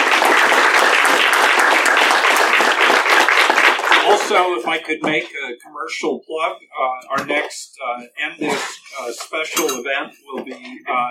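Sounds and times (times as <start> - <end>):
crowd applauding: 0.0 - 4.6
speech: 4.3 - 11.0.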